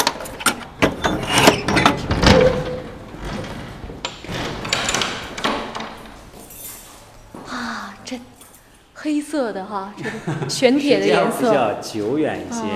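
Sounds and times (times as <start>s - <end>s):
door opening: 0.0s - 7.1s
speech: 9.3s - 12.7s
laughter: 10.0s - 11.8s.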